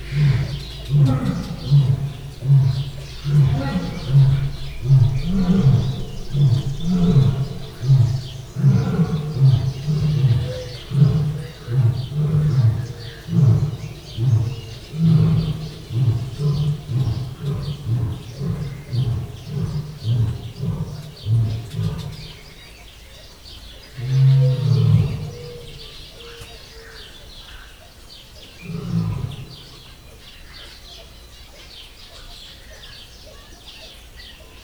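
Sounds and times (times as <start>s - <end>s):
lion roaring at a white-handed gibbon in a zoo: 0.0s - 22.7s, 23.9s - 26.0s, 28.6s - 29.9s.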